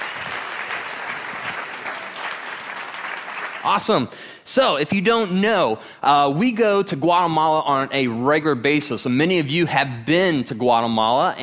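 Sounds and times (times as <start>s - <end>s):
audience applause: 0.0s - 4.0s
speech: 3.6s - 11.4s.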